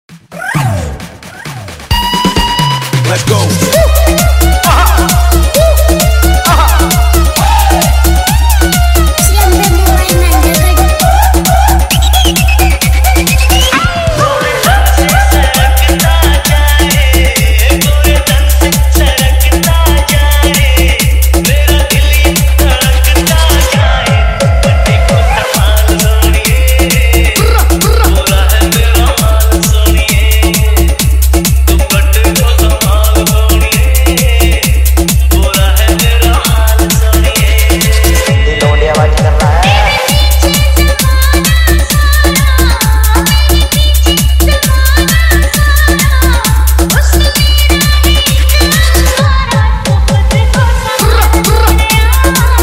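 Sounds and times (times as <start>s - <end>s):
hard bass vibration mix: 0.1s - 52.6s.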